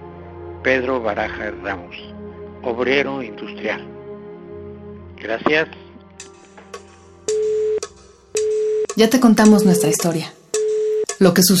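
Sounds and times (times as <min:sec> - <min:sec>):
speech: 0:00.6 - 0:04.0, 0:05.2 - 0:05.8, 0:09.0 - 0:10.4, 0:11.2 - 0:11.5
telephone busy signal: 0:07.3 - 0:07.8, 0:08.4 - 0:09.0, 0:09.6 - 0:11.1.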